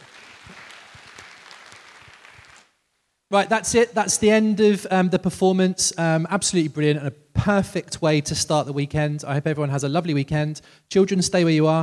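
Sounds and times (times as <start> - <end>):
round of applause: 0.0 - 2.8
speech: 3.3 - 11.8.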